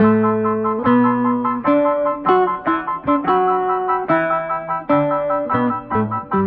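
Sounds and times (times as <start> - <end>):
guitar: 0.0 - 6.4.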